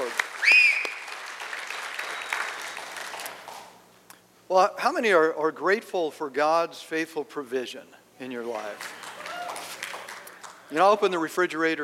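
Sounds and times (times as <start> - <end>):
audience applause: 0.0 - 3.7, 8.8 - 10.7
speech: 4.5 - 9.0, 10.7 - 11.8.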